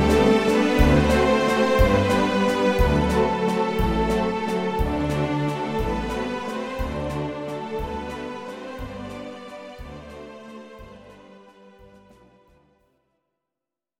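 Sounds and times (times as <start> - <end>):
swing music medley: 0.0 - 9.3.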